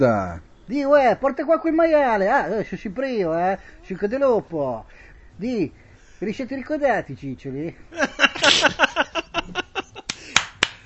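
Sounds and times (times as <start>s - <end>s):
speech: 0.0s - 9.6s
laughter: 7.9s - 10.3s
body percussion claps, snaps and slaps: 10.0s - 10.8s.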